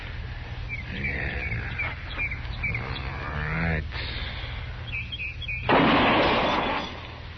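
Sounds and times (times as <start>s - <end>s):
birds chirping: 0.0s - 7.3s
rifle shot fired with the gun steadied on a fence rail: 5.7s - 7.0s.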